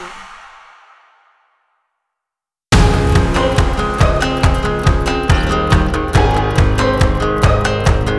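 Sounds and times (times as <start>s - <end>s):
happy music: 2.7s - 8.1s.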